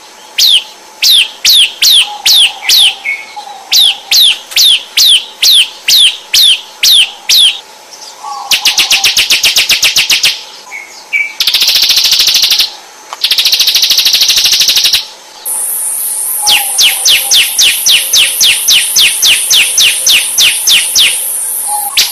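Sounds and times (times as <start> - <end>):
Ciblek bird singing: 0.0 - 22.1.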